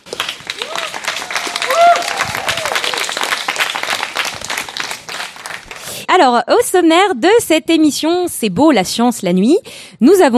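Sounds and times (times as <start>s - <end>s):
audience applause: 0.0s - 5.9s
speech: 6.1s - 10.3s.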